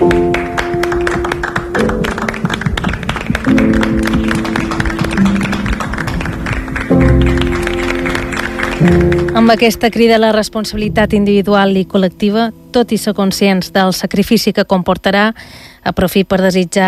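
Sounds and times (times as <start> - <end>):
applause: 0.0 - 10.0
speech: 9.4 - 16.8.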